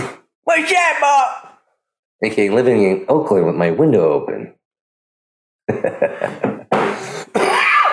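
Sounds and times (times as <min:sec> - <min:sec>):
speech: 0:00.6 - 0:01.5, 0:02.2 - 0:04.6, 0:05.7 - 0:06.5
laughter: 0:05.7 - 0:06.7
person coughing: 0:06.0 - 0:07.8.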